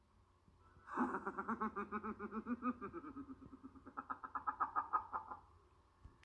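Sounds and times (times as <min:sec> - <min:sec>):
dark chuckle: 0:00.8 - 0:05.6.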